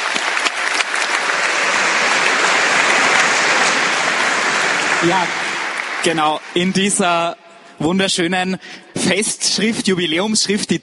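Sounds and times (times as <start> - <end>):
audience applause: 0.0 - 7.4
speech: 5.0 - 5.4, 6.0 - 10.8.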